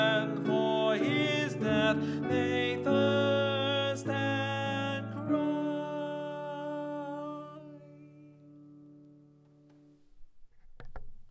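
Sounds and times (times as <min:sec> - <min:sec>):
alto voice singing: 0:00.0 - 0:08.5.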